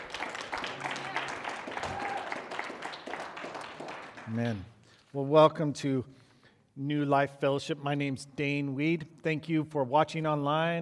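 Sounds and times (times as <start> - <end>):
church congregation clapping for the worship team: 0.0 - 4.8
speech: 4.3 - 6.2, 6.8 - 10.8.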